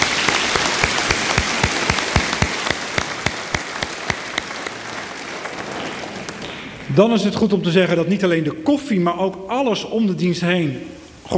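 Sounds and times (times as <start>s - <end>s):
audience applause: 0.0s - 6.9s
speech: 6.9s - 11.3s.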